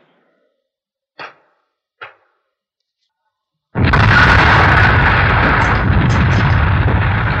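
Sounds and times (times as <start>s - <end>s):
rocks raining down: 3.8s - 7.3s
sharp pops: 3.8s - 7.3s
stone landmine explosion: 3.8s - 7.3s.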